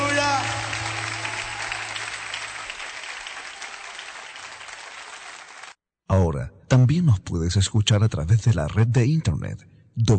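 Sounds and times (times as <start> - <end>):
audience clapping hands: 0.0 - 5.8
speech: 6.9 - 10.1.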